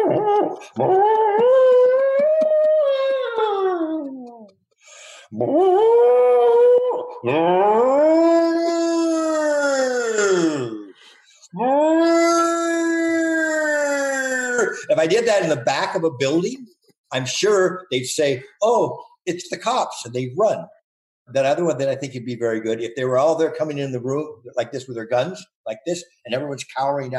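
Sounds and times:
voice imitating a wailing siren: 0.0s - 4.5s, 5.3s - 10.9s, 11.5s - 14.9s
speech: 0.5s - 1.7s, 5.3s - 6.1s, 7.2s - 8.3s, 15.0s - 27.1s.

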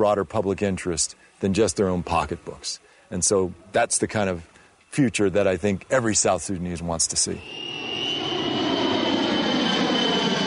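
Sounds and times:
speech: 0.0s - 7.6s
plane flying overhead: 7.2s - 10.4s.

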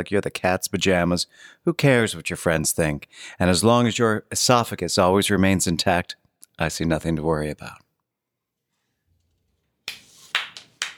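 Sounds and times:
speech: 0.0s - 7.8s
single person clapping after a reading: 9.9s - 10.9s.

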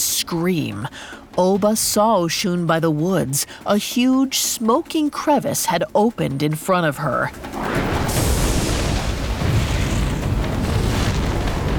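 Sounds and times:
speech: 0.2s - 7.8s
thunder boom from a lightning strike: 7.6s - 11.7s.

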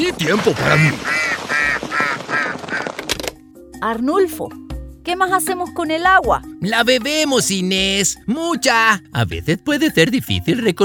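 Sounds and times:
speech: 0.0s - 1.2s, 3.8s - 10.8s
duckling quacking: 0.6s - 3.1s.

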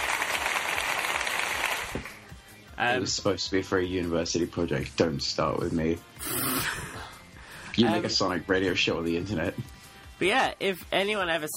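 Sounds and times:
round of applause, many hands clapping together: 0.0s - 2.2s
speech: 2.8s - 7.0s, 7.8s - 11.5s.

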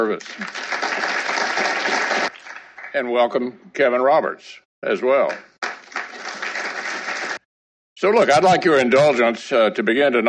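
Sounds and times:
speech: 0.0s - 1.7s, 2.9s - 5.5s, 8.0s - 10.2s
audience applause: 0.0s - 3.0s, 5.6s - 7.4s.

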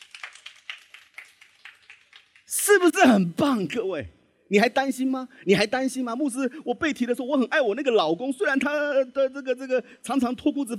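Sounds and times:
audience applause: 0.0s - 2.6s
speech: 2.7s - 10.7s.

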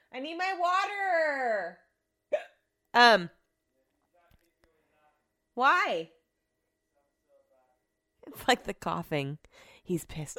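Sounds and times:
speech: 0.2s - 3.4s, 5.6s - 6.2s, 8.3s - 10.3s
voiced hiccups: 2.3s - 2.7s.

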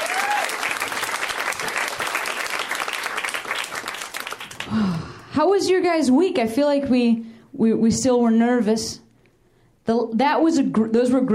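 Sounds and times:
audience applause: 0.0s - 5.0s
speech: 4.7s - 9.0s, 9.9s - 11.3s.

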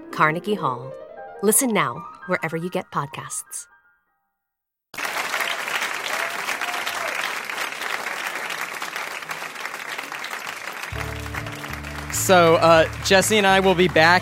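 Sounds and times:
speech: 0.1s - 3.7s, 12.1s - 14.2s
audience applause: 5.0s - 14.2s.

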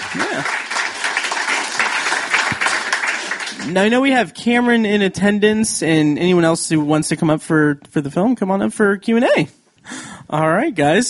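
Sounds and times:
crowd applauding: 0.0s - 4.0s
speech: 0.1s - 0.7s, 3.7s - 11.0s.

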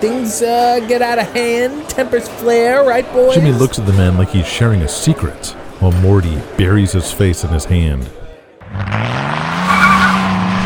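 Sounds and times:
speech: 0.0s - 9.2s
car tires screeching as car speeds off: 8.6s - 10.6s.

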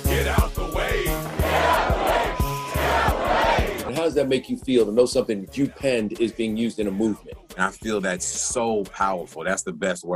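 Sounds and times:
large crowd of protesters yelling and chanting: 0.1s - 3.9s
speech: 4.1s - 10.1s.

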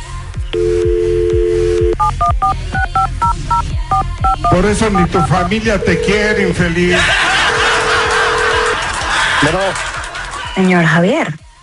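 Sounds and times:
telephone dial tone: 0.5s - 4.6s, 5.2s - 6.5s, 8.0s - 8.8s
DTMF key beeps as a telephone number is dialed: 0.6s - 6.6s
speech: 4.3s - 7.4s, 9.4s - 9.9s, 10.6s - 11.4s
laughter: 6.2s - 10.7s.

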